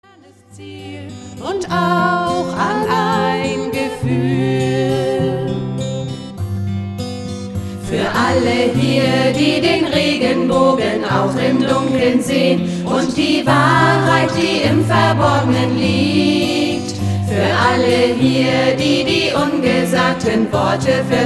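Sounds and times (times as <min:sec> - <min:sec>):
guitar ensemble: 0:00.6 - 0:21.2.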